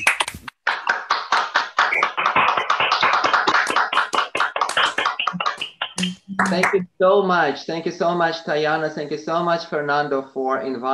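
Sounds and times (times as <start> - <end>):
online audience clapping over microphones: 0.0 - 6.8
speech: 6.0 - 10.9.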